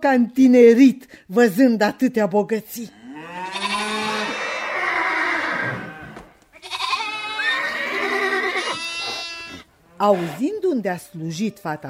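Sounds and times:
speech: 0.0 - 3.6, 10.0 - 11.8
wavering calls from herds of horses, cattle and sheep: 3.2 - 10.4.

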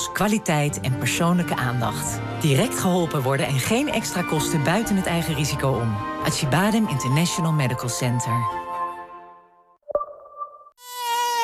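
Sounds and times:
speech: 0.2 - 8.7
mosquito buzzing: 10.8 - 11.4.

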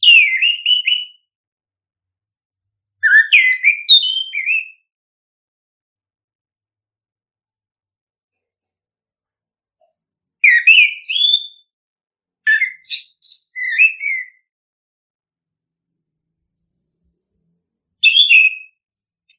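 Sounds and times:
bird singing chirps and whistles: 0.0 - 1.3, 3.0 - 4.9, 10.4 - 11.7, 12.5 - 14.5, 18.0 - 19.3.

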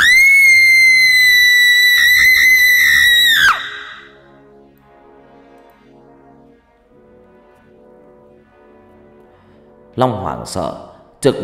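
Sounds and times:
shrill ghastly scream: 0.0 - 4.1
speech: 10.0 - 11.4.

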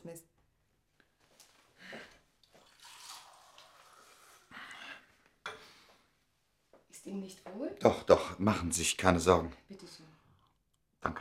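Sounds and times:
water poured into a glass: 2.4 - 4.5
speech: 7.2 - 10.0.

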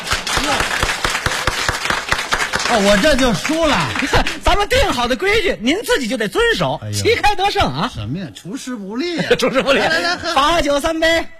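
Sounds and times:
audience applause at a dinner-table drinking game: 0.0 - 4.5
speech: 2.7 - 11.3
laughter: 3.1 - 4.5, 9.1 - 10.7.

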